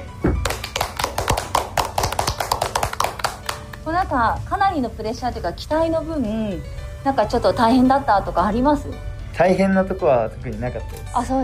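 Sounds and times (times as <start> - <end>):
applause: 0.4 - 3.9
speech: 3.9 - 11.4.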